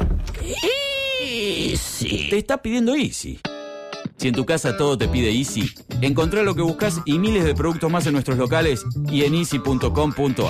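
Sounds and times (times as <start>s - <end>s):
household door creaking: 0.0s - 0.8s
speech: 2.0s - 3.5s, 4.2s - 10.4s.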